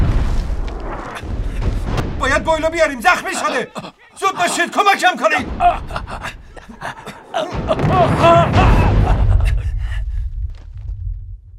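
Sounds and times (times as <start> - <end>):
artillery shell explosion: 0.0 - 3.0, 5.4 - 6.6, 7.5 - 11.5
crackling debris: 0.0 - 3.2, 5.4 - 11.5
speech: 2.4 - 8.6
laughter: 2.8 - 10.0.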